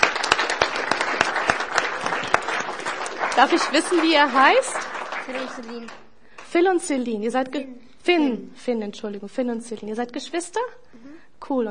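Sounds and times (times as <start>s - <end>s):
applause: 0.0s - 6.6s
speech: 3.4s - 11.6s.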